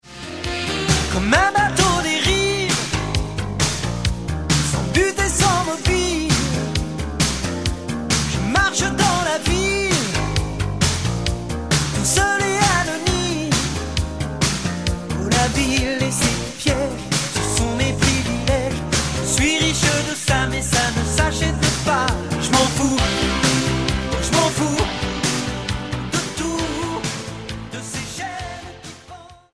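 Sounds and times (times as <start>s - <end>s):
Yamaha DX7 synthesizer: 0.0s - 29.5s.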